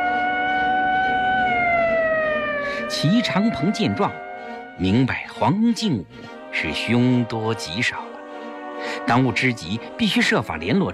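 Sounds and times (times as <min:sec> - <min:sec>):
police car siren wailing as the car drives away: 0:00.0 - 0:05.0
speech: 0:02.9 - 0:04.2, 0:04.8 - 0:08.1, 0:08.9 - 0:10.9.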